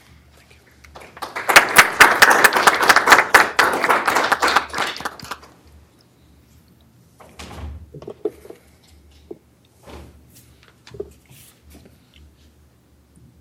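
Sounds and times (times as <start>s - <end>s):
audience applause welcoming a student speaker: 0.9s - 5.6s.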